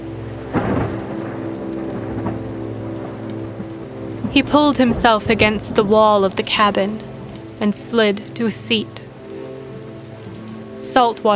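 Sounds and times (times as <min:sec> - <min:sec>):
low rolling thunder rumble: 0:00.0 - 0:11.0
steady heavy rain: 0:00.0 - 0:11.3
loud thunder crack: 0:00.5 - 0:07.6
speech: 0:04.4 - 0:09.0, 0:11.0 - 0:11.3.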